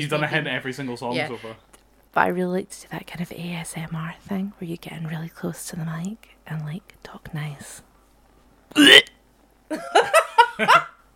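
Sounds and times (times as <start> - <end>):
speech: 0.0 - 7.9, 8.7 - 9.1, 9.7 - 11.0
gulping retch: 8.8 - 9.1.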